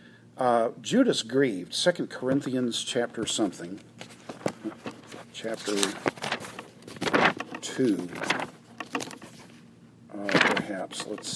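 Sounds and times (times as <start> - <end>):
speech: 0.4 - 4.0, 5.4 - 6.3, 7.8 - 8.5, 10.2 - 11.3
book pages turning in the microphone: 4.0 - 9.6, 10.2 - 11.3.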